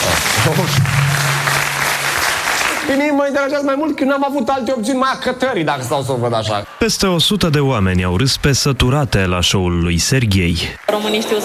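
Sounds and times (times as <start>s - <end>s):
audience applause at a stand-up comedy show: 0.0s - 3.5s, 5.8s - 11.4s
speech: 0.4s - 1.1s, 2.9s - 11.4s.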